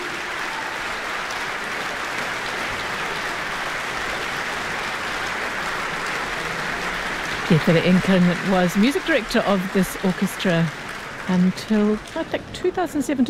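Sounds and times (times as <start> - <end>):
shouts: 0.0 - 1.2
large concert audience applauding: 0.0 - 13.2
speech: 7.5 - 13.2.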